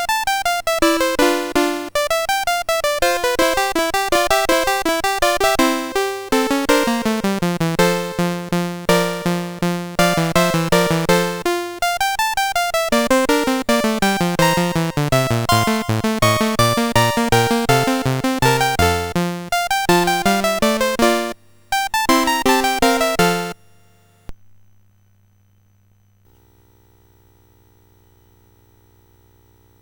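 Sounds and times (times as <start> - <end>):
sonatina on a CSG8580R5 sound chip: 0.0 - 23.6.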